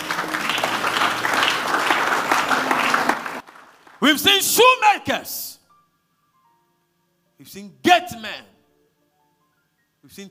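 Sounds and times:
audience clapping: 0:00.0 - 0:04.4
speech: 0:04.0 - 0:05.5, 0:07.4 - 0:08.5, 0:10.0 - 0:10.3.

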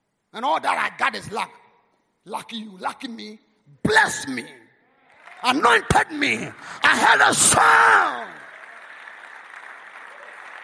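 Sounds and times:
speech: 0:00.4 - 0:01.6, 0:02.2 - 0:04.6, 0:05.4 - 0:08.3
crowd clapping: 0:05.0 - 0:10.6.

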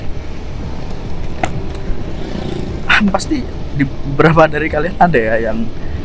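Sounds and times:
motorcycle riding on road at night: 0:00.0 - 0:04.2
speech: 0:03.0 - 0:05.8.

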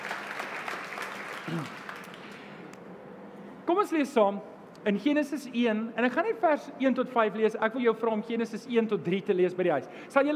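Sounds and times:
audience applause: 0:00.0 - 0:02.6
speech: 0:01.5 - 0:01.8, 0:03.7 - 0:10.3.

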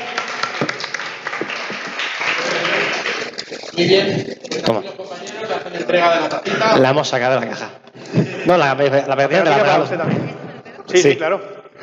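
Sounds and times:
audience applause: 0:00.0 - 0:03.7
speech: 0:03.8 - 0:10.3, 0:10.9 - 0:11.5.

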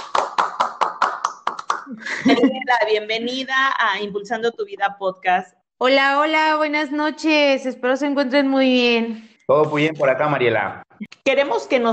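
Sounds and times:
applause: 0:00.0 - 0:02.3
speech: 0:01.9 - 0:11.9.

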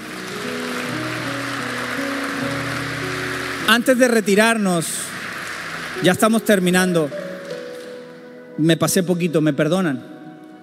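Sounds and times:
audience clapping loudly: 0:00.0 - 0:07.9
speech: 0:03.7 - 0:05.1, 0:06.0 - 0:07.2, 0:08.6 - 0:10.1.

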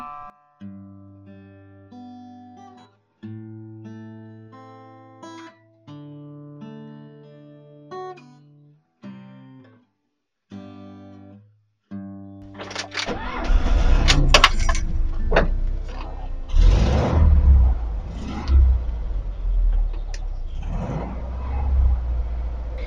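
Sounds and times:
Volkswagen car engine rumbling and revving: 0:12.5 - 0:22.8.

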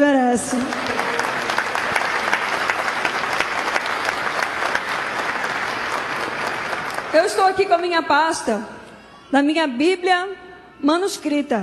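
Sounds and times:
speech: 0:00.0 - 0:01.0, 0:07.1 - 0:11.6
audience applause: 0:00.4 - 0:07.9.

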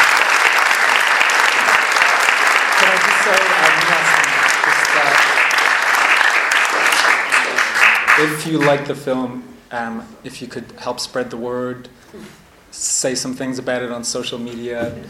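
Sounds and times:
audience round of applause: 0:00.0 - 0:08.9
speech: 0:03.2 - 0:05.5, 0:08.2 - 0:15.0.

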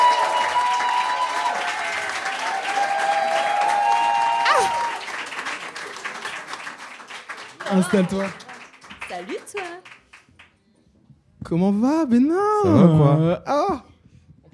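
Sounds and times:
audience applause: 0:00.0 - 0:10.5
speech: 0:07.7 - 0:08.4, 0:09.1 - 0:09.9, 0:11.5 - 0:13.9.

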